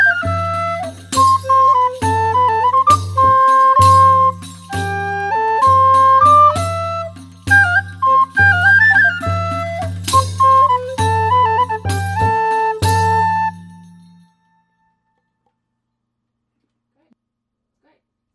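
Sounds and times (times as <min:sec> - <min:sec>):
medieval estampie dance music: 0:00.0 - 0:14.2.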